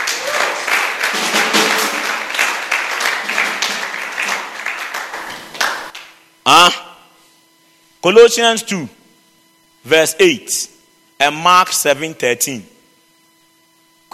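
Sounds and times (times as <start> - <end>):
audience clapping and cheering: 0.0 - 6.2
speech: 6.5 - 6.8, 8.0 - 9.0, 9.8 - 12.8.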